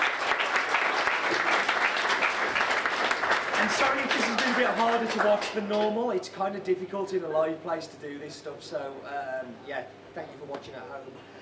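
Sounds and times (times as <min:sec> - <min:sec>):
audience applause: 0:00.0 - 0:06.0
speech: 0:03.8 - 0:11.4.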